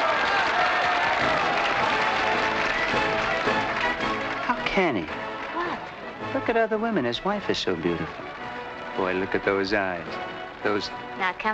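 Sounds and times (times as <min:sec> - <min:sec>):
crowd clapping: 0:00.0 - 0:11.5
speech: 0:04.8 - 0:05.2, 0:06.3 - 0:08.3, 0:09.0 - 0:11.5.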